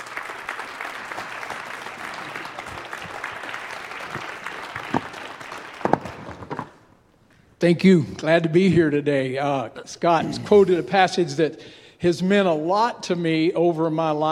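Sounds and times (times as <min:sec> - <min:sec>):
audience applauding a speaker at a ministry gathering: 0:00.0 - 0:06.9
speech: 0:07.6 - 0:14.3.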